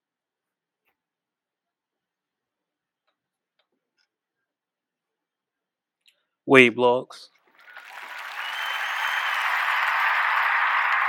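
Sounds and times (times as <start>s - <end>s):
speech: 6.5s - 7.4s
audience applause: 7.6s - 11.0s.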